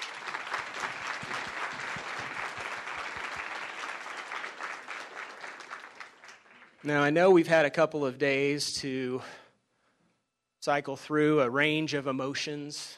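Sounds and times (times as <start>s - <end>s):
audience applause: 0.0s - 6.8s
speech: 6.8s - 9.4s, 10.6s - 12.9s.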